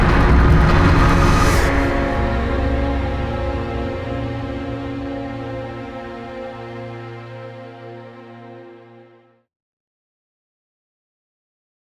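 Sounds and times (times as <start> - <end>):
epic cinematic trailer music at 150 BPM: 0.0 - 8.5.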